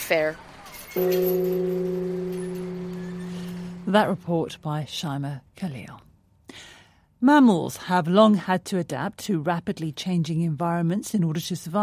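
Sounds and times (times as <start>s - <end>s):
speech: 0.1s - 2.9s, 3.9s - 11.8s
large peace bell with world map struck by a log: 1.0s - 4.6s.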